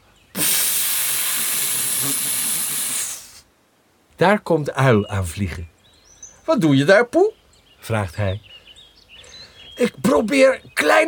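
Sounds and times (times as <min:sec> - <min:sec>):
blown air hiss: 0:00.3 - 0:03.6
speech: 0:04.2 - 0:05.7, 0:06.5 - 0:08.5, 0:09.8 - 0:11.0.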